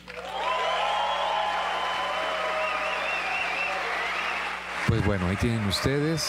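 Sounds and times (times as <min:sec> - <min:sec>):
audience applause and ovation: 0:00.0 - 0:06.2
speech: 0:04.9 - 0:06.2.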